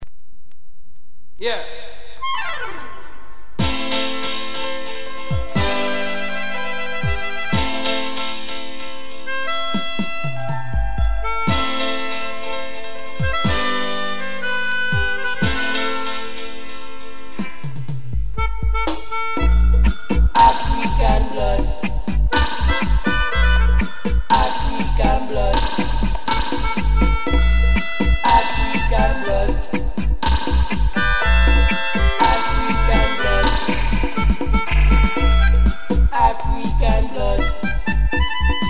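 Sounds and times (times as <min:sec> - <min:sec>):
melodica: 0:02.2 - 0:17.7, 0:18.4 - 0:38.6.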